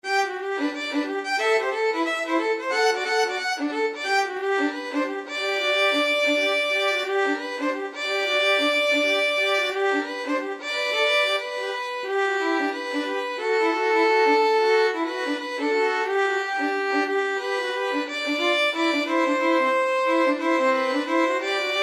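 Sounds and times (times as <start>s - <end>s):
violin duet: 0.0s - 21.8s.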